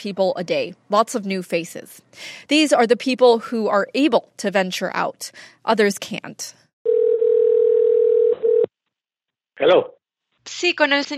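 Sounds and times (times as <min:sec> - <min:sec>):
speech: 0:00.0 - 0:06.6, 0:09.6 - 0:11.1
telephone line tone before a call: 0:06.9 - 0:08.7.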